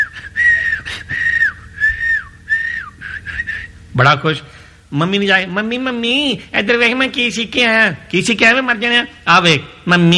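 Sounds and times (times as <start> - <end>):
person whistling a tune: 0.0 - 3.8
speech: 4.0 - 10.1.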